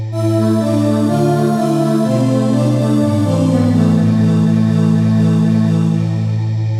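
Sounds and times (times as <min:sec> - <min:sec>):
synth voice: 0:00.2 - 0:06.6.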